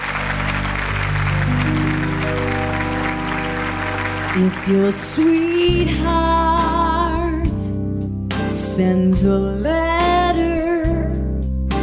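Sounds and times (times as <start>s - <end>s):
audience applause: 0.0s - 5.8s
instrumental music: 0.0s - 11.8s
speech: 4.4s - 6.8s, 8.8s - 10.0s.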